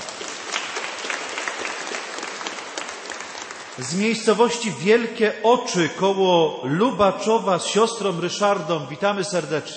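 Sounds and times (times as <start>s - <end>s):
audience applause: 0.0s - 4.4s
speech: 3.8s - 9.7s.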